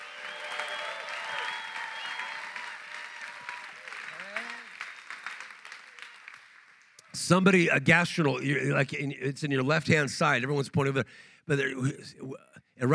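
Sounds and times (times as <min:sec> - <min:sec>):
audience clapping and shouting: 0:00.0 - 0:07.2
speech: 0:07.2 - 0:12.9.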